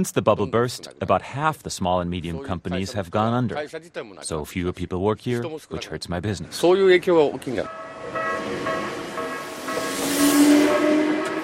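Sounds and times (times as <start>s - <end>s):
speech: 0.0s - 8.8s
faint metallic ringing tones: 7.4s - 11.4s
commuter train rolling along the rails: 7.6s - 11.4s.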